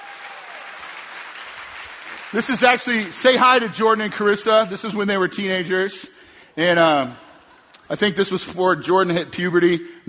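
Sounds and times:
round of applause: 0.0 - 3.4
speech: 2.3 - 7.2, 7.9 - 10.0.

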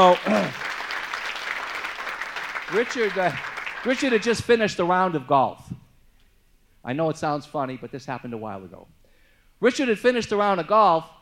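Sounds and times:
speech: 0.0 - 0.6, 2.7 - 5.7, 6.8 - 9.0, 9.6 - 11.2
audience applause at a business gathering: 0.0 - 4.4.

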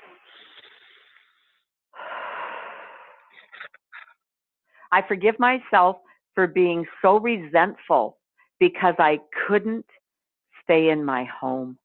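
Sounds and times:
deep breath during a self-forgiveness clearing exercise: 0.0 - 3.7
speech: 4.9 - 10.0, 10.7 - 11.8.

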